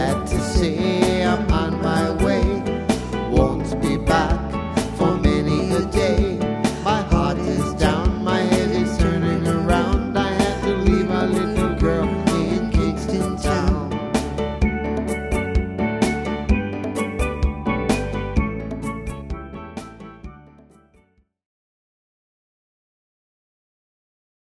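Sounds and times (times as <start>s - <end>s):
tropical calypso guitar music: 0.0s - 21.1s.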